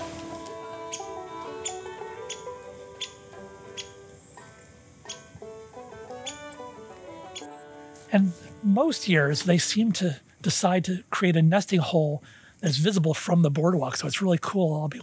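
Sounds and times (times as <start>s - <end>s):
downy woodpecker high-pitched squeak: 0.9s - 4.0s, 5.1s - 5.4s, 6.1s - 8.3s
speech: 8.1s - 15.0s.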